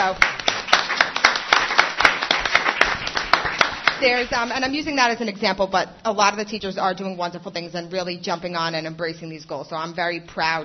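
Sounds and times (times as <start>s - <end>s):
speech: 0.0s - 0.3s, 4.0s - 10.6s
audience applause: 0.0s - 4.5s.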